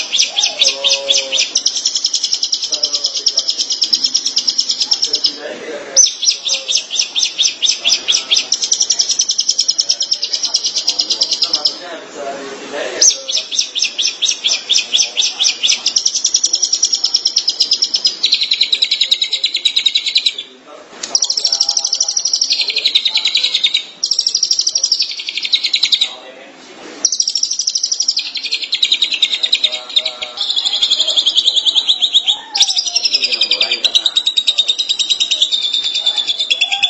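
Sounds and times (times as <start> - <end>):
long-tailed shrike chattering: 0.0 - 12.0, 12.8 - 26.2, 27.0 - 36.8.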